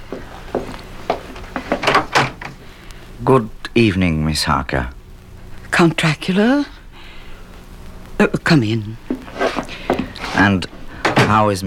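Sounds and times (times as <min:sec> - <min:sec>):
door being opened with wooden clunks and rattles: 0:01.8 - 0:02.5
speech: 0:03.2 - 0:05.0, 0:05.8 - 0:06.8, 0:08.2 - 0:09.0, 0:10.4 - 0:10.7, 0:11.3 - 0:11.6.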